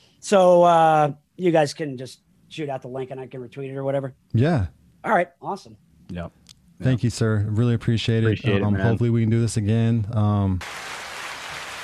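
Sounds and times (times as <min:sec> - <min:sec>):
speech: 0:00.2 - 0:11.0
applause: 0:10.6 - 0:11.8.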